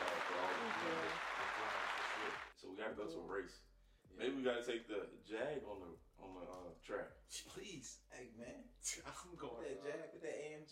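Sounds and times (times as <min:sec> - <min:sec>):
round of applause: 0:00.0 - 0:02.5
speech: 0:02.6 - 0:10.6.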